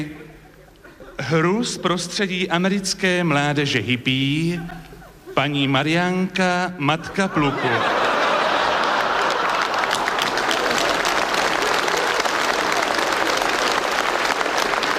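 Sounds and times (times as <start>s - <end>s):
speech: 0.0s - 0.2s, 1.2s - 8.1s
laughter: 0.0s - 1.7s, 4.4s - 13.7s
sustained applause from a large audience: 7.4s - 14.9s.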